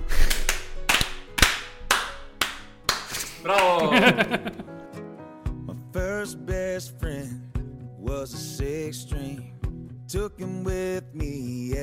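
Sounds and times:
hand claps: 0.0 - 4.7
laughter: 3.1 - 4.8
speech: 3.4 - 4.7, 6.0 - 7.5, 8.1 - 9.5, 10.1 - 11.8.

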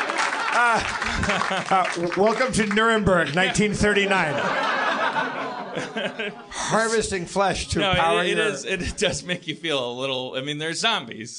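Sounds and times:
audience applause: 0.0 - 6.2
laughter: 0.0 - 9.9
speech: 0.6 - 11.3.

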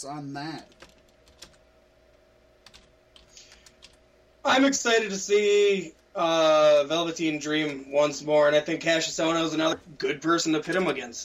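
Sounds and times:
speech: 0.0 - 0.9, 4.4 - 11.2
low steady hum: 0.0 - 11.2
fingers typing on a computer keyboard: 0.6 - 1.6, 2.6 - 4.0.

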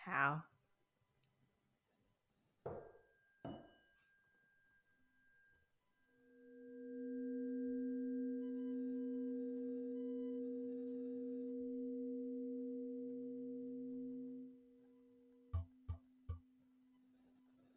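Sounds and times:
speech: 0.0 - 0.5
harmonic chord of humming tones: 6.2 - 15.9
sound-healing instrument struck: 6.2 - 16.4.

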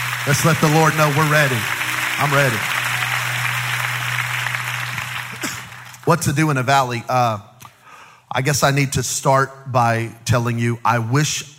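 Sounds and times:
audience clapping hands: 0.0 - 6.7
speech: 0.2 - 2.7, 6.1 - 7.5, 8.3 - 11.5.

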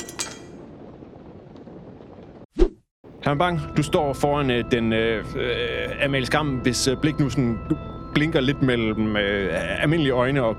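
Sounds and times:
knife clinking onto the floor: 0.0 - 0.5
speech: 3.2 - 10.5.

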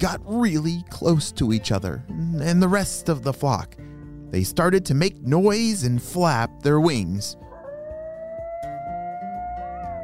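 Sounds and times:
speech: 0.0 - 7.4
coyotes howling: 7.5 - 10.0.

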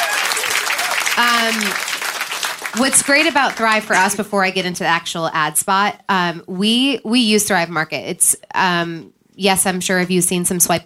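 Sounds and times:
audience round of applause: 0.0 - 4.1
speech: 1.2 - 1.9, 2.7 - 10.8.

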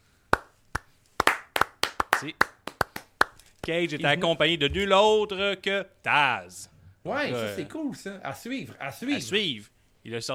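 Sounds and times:
golf clap, soft polite clapping: 0.3 - 3.8
speech: 2.2 - 2.5, 3.7 - 10.3.

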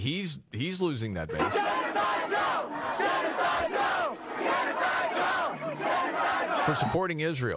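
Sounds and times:
speech: 0.0 - 3.0, 6.6 - 7.5
crowd chanting a protest slogan: 1.3 - 7.0.

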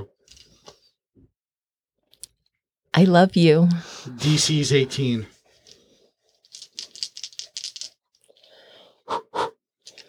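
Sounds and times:
speech: 3.0 - 5.4
dice tumbling across a surface: 6.4 - 8.0.

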